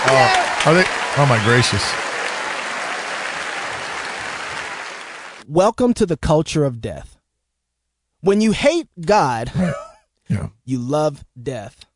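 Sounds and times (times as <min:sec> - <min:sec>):
crowd applause: 0:00.0 - 0:05.4
speech: 0:00.1 - 0:02.1, 0:05.5 - 0:07.1, 0:08.2 - 0:11.9.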